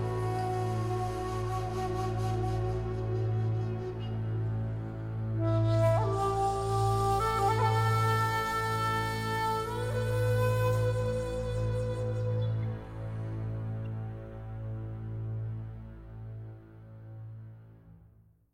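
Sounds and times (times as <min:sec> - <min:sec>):
ambient music: 0:00.0 - 0:18.3.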